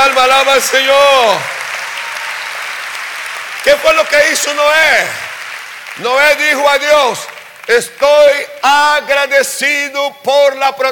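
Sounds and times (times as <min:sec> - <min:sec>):
audience applause: 0:00.0 - 0:08.6
speech: 0:00.2 - 0:01.6, 0:03.6 - 0:05.3, 0:06.0 - 0:10.9.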